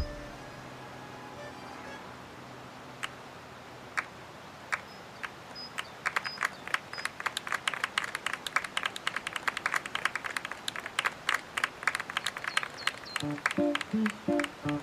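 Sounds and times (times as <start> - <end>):
crowd applauding: 0.0 - 0.4, 4.7 - 14.8.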